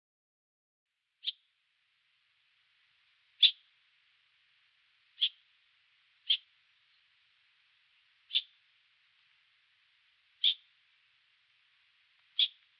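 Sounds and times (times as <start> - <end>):
bird trilling: 3.4 - 3.6, 5.2 - 5.4, 6.2 - 6.5, 8.3 - 8.6, 10.4 - 10.7, 12.4 - 12.6.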